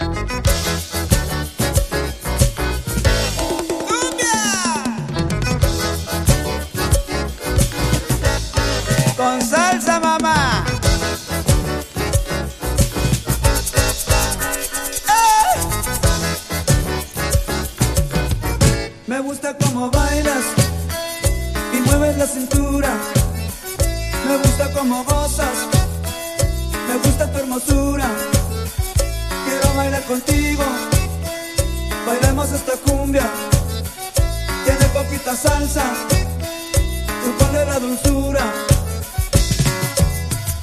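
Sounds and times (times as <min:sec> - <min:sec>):
Tex-Mex cumbia with salsa music: 0:00.0 - 0:40.6.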